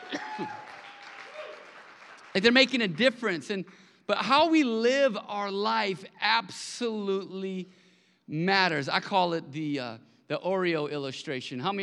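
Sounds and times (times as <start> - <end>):
audience applause: 0.0 - 3.0
speech: 0.4 - 0.6, 2.4 - 11.8.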